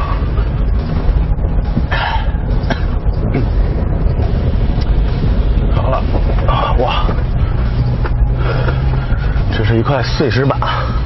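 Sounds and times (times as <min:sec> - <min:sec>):
SUV 2.7-litre engine straining uphill: 0:00.0 - 0:11.0
speech: 0:09.8 - 0:10.9.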